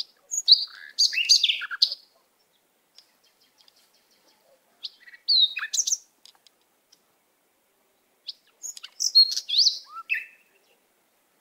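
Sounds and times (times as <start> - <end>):
canary singing whistled notes and trills: 0.0 - 6.1, 8.2 - 10.8.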